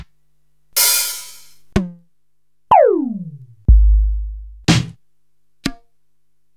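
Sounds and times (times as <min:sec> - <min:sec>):
sliced Korg TR-Rack samples: 0:00.8 - 0:01.6, 0:02.7 - 0:04.9.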